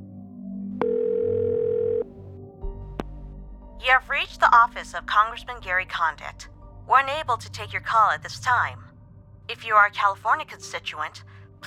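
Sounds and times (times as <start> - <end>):
dial tone: 0.8 - 2.1
speech: 3.8 - 8.8, 9.5 - 11.6.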